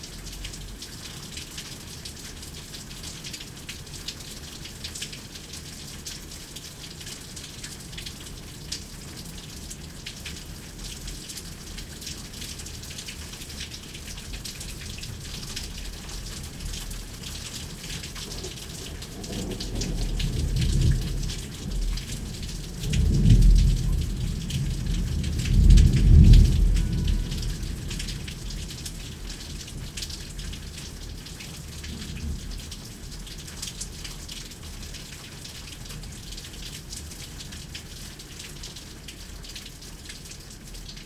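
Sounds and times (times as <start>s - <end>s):
thunderstorm: 18.2s - 30.4s.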